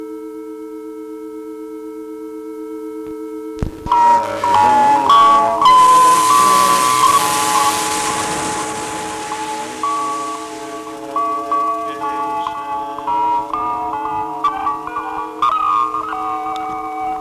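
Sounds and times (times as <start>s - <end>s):
Volca synthesizer wash: 3.6s - 17.0s.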